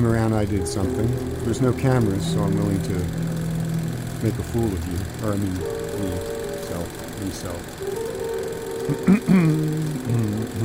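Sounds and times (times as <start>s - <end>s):
speech: 0.0s - 3.4s, 4.2s - 8.0s, 8.9s - 10.6s
low voiced hum: 0.0s - 10.6s
person clearing throat: 8.9s - 10.6s.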